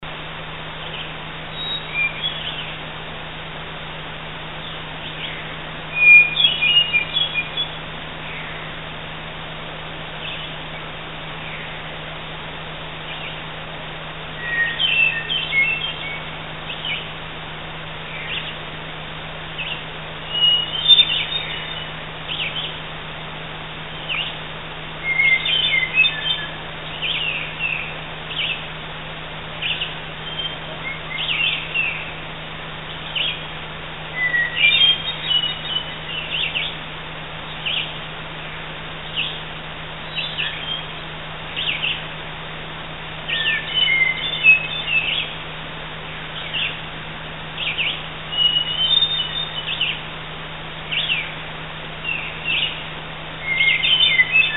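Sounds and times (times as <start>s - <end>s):
hermit thrush singing: 4.6s - 8.9s, 10.1s - 42.3s, 43.1s - 54.5s.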